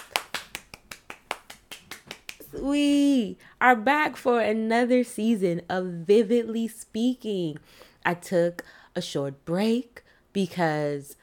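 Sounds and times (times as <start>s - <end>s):
clapping: 0.0s - 2.4s
speech: 2.5s - 11.2s.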